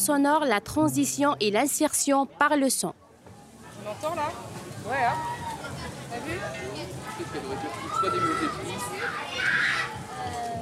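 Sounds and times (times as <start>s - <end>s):
speech: 0.0s - 3.0s, 3.9s - 5.4s, 6.1s - 10.4s
little boy shouting: 7.8s - 10.0s.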